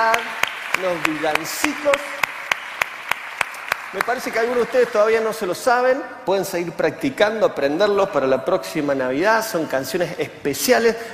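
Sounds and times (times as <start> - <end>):
speech: 0.0 - 2.3, 3.9 - 11.1
audience clapping: 0.0 - 5.6.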